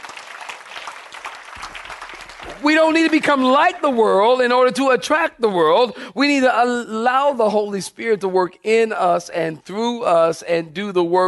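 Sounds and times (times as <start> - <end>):
audience clapping hands: 0.0 - 4.9
speech: 2.4 - 11.2.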